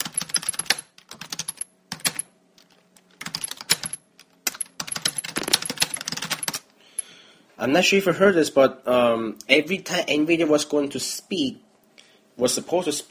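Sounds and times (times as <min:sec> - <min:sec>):
rapid keyboard typing: 0:00.0 - 0:02.2, 0:03.2 - 0:03.9, 0:04.5 - 0:06.6
speech: 0:07.6 - 0:11.6, 0:12.4 - 0:13.0.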